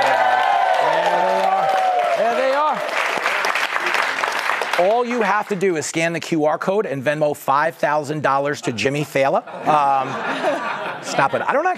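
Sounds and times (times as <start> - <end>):
voices whooping and cheering: 0.0 - 2.9
studio audience applauding: 0.0 - 5.8
speech: 4.8 - 11.7
laughter: 8.6 - 11.7.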